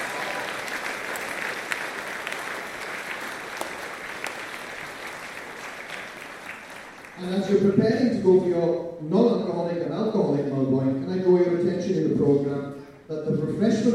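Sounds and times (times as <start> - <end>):
applause from a sizable audience: 0.0 - 7.2
speech: 7.2 - 13.9.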